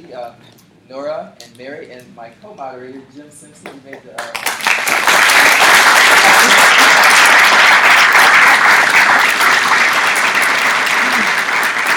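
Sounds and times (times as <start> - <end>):
speech: 0.1 - 6.6
audience applause: 4.3 - 11.9.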